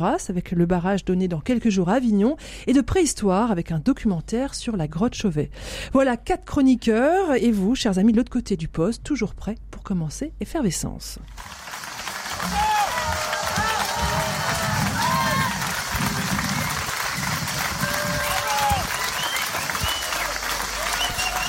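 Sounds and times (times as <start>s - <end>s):
speech: 0.0s - 11.8s, 12.4s - 12.7s
outdoor festival applause: 11.4s - 21.4s.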